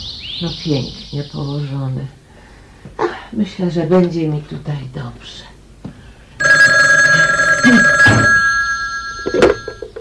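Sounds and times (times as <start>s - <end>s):
speech: 0.4s - 2.2s, 3.3s - 5.5s
telephone ringing: 6.4s - 9.9s.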